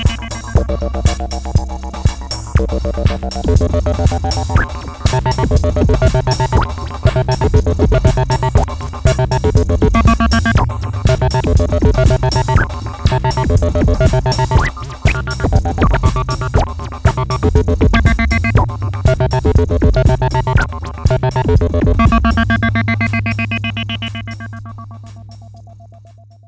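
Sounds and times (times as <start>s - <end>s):
dirty LFO synth solo: 0.0s - 25.1s.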